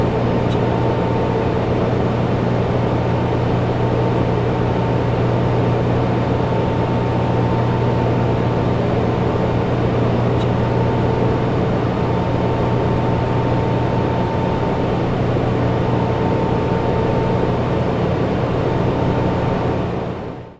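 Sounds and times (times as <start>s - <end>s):
computer data center room ambience: 0.0s - 20.5s.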